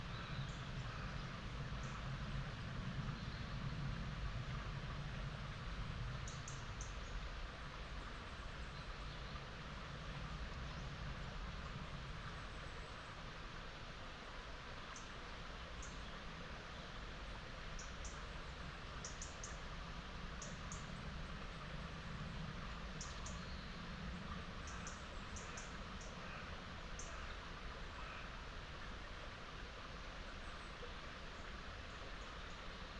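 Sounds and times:
low rumble and hiss in an upland meadow dell: 0.0 - 32.9.

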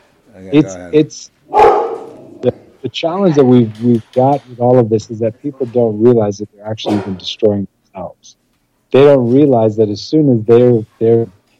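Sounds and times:
speech: 0.3 - 1.4, 2.4 - 11.4
coyotes barking and yipping: 1.5 - 2.5.

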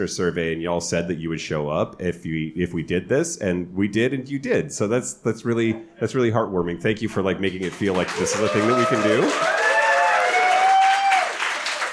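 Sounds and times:
speech: 0.0 - 9.6
live audience applause: 7.6 - 11.9.

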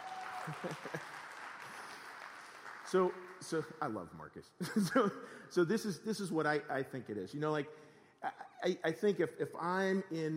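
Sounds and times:
audience applause: 0.0 - 3.6
speech: 0.4 - 1.3, 2.9 - 10.3.

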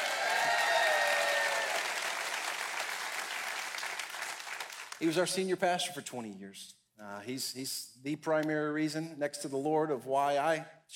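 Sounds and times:
crowd applause: 0.0 - 5.0
speech: 5.0 - 10.9.

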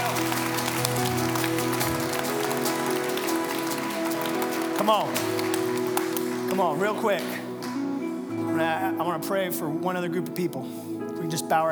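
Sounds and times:
audience clapping and shouting: 0.0 - 8.0
speech: 4.8 - 5.5, 6.6 - 7.4, 8.6 - 11.7.

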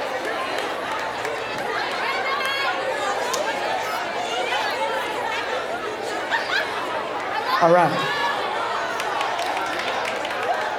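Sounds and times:
large group applauding steadily: 0.0 - 2.7, 8.9 - 10.7
faint murmur of voices: 0.0 - 10.7
speech: 7.6 - 8.2.

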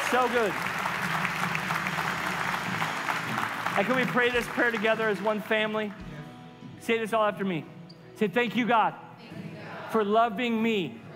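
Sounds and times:
church congregation giving a round of applause: 0.0 - 6.2
speech: 0.1 - 1.6, 3.8 - 6.1, 6.8 - 11.0.

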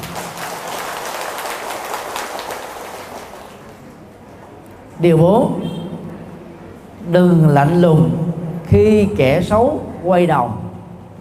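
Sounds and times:
audience applause: 0.0 - 3.8
speech: 5.0 - 5.8, 7.1 - 10.6.

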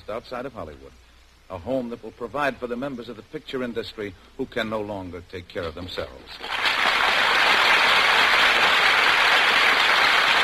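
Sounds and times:
speech: 0.0 - 6.8
audience applause: 6.4 - 10.4.

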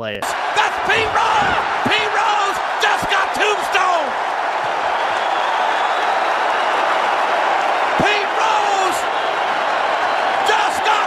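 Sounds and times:
speech: 0.0 - 2.3
large wrestling crowd cheering: 0.2 - 11.0.

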